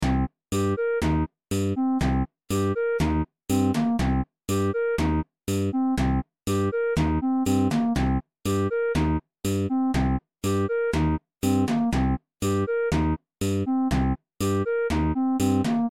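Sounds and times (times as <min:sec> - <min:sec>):
funk music: 0:00.5 - 0:15.8.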